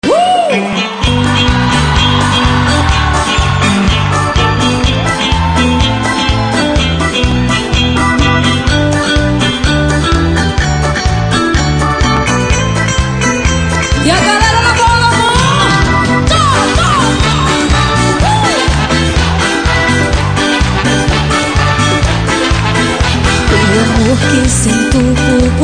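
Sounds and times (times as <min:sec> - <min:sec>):
live band playing: 0:00.0 - 0:25.6.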